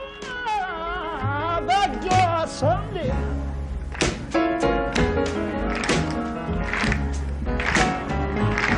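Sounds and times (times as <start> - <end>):
person singing: 0.0 - 3.4
loud music: 0.2 - 8.7
audience clapping along to a live performance: 3.8 - 8.7.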